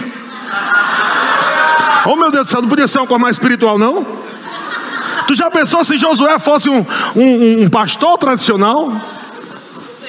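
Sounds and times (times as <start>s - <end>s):
audience shouting: 0.4s - 2.2s
speech: 2.1s - 4.2s, 5.3s - 9.2s
laughter: 4.2s - 6.2s.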